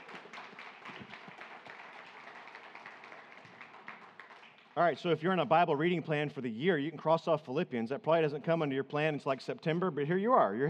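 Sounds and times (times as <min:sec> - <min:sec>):
audience applause for readers: 0:00.0 - 0:04.7
speech: 0:04.8 - 0:10.6.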